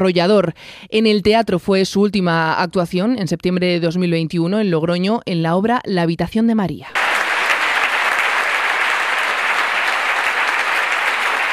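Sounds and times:
speech: 0.0 - 7.0
theatre audience ovation: 6.9 - 11.5.

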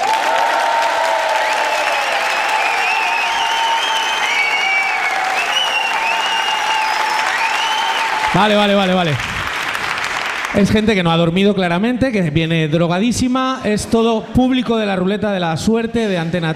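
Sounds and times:
audience cheering in a comedy hall: 0.0 - 11.0
large audience in a comedy hall clapping: 0.0 - 11.3
speech: 8.4 - 9.3, 10.5 - 16.5.

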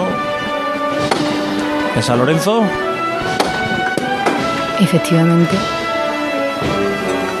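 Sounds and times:
brass band music: 0.0 - 7.3
capataz's hammer knock on a procession float: 1.0 - 1.7, 3.2 - 4.6
speech: 2.0 - 3.4, 4.8 - 5.8.

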